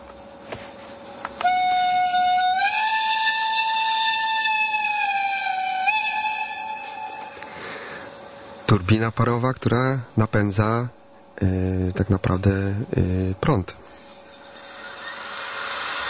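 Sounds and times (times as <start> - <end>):
steam locomotive whistle: 1.4 - 7.5
speech: 8.8 - 14.1.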